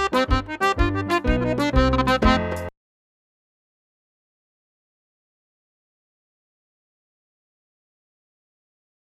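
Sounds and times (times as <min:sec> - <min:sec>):
single jig tune: 0:00.0 - 0:02.7.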